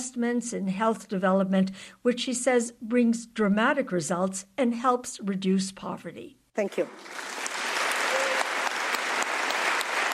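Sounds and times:
speech: 0:00.0 - 0:07.5
large crowd rousing applause after a speech: 0:06.9 - 0:10.1.

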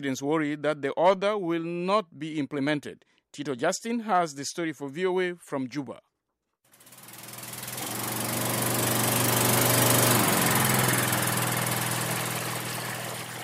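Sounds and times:
speech: 0:00.0 - 0:06.1
generator-powered water tanker pumping water into a drum: 0:06.7 - 0:13.4.

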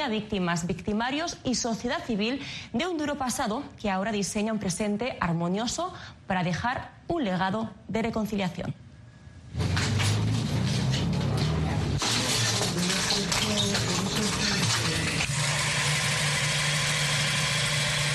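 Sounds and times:
speech: 0:00.0 - 0:08.8
sewing machines running: 0:09.6 - 0:18.1.

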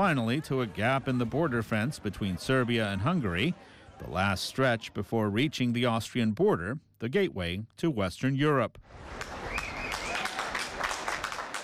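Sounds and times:
speech: 0:00.0 - 0:09.4
people in Vienna applauding trains arriving from Hungary: 0:09.0 - 0:11.6.

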